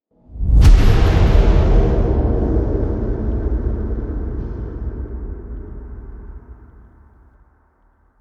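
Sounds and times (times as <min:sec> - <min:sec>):
impact: 0:00.4 - 0:08.1.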